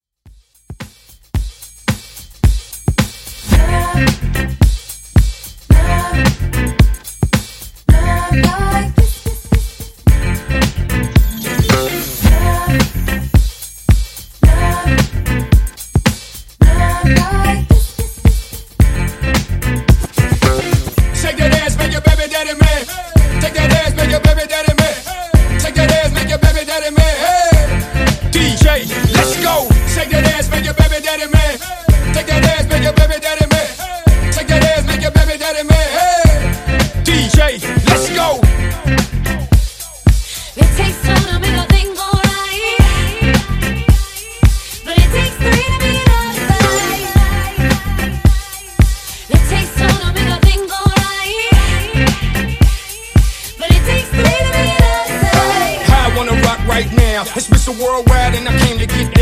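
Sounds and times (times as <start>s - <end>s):
funk bootleg mashup music at 110 bpm: 0.3s - 59.2s.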